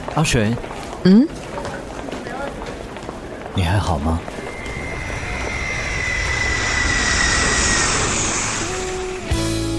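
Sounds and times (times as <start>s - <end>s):
speech: 0.1s - 1.4s, 3.5s - 4.3s
airplane flying overhead: 4.2s - 9.7s.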